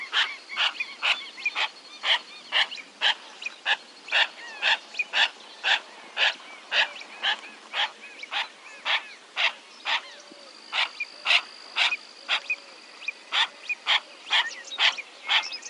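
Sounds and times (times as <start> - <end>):
yellow-billed pintail giving harsh rasping calls: 0.0 - 15.6.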